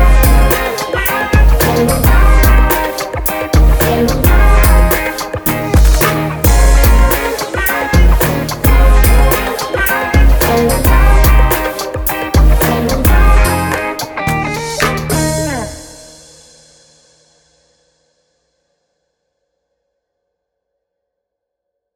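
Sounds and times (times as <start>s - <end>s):
instrumental music: 0.0s - 16.5s.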